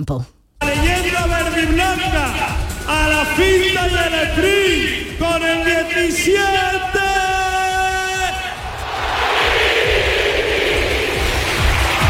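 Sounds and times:
speech: 0.0s - 7.0s
stadium crowd ovation for a footballer: 5.5s - 12.0s.

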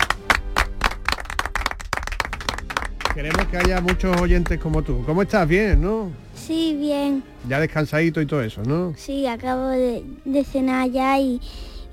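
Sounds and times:
applause in the studio: 0.0s - 5.0s
speech: 3.2s - 11.9s.

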